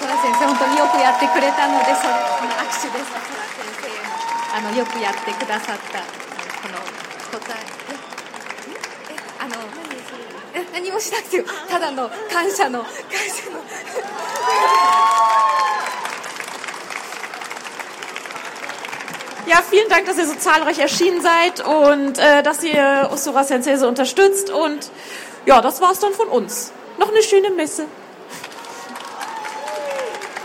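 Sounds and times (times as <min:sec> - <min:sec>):
audience applause and cheering: 0:00.0 - 0:10.6, 0:13.9 - 0:20.4, 0:28.2 - 0:30.4
speech: 0:00.6 - 0:03.7, 0:04.6 - 0:08.1, 0:10.8 - 0:15.7, 0:19.5 - 0:28.0.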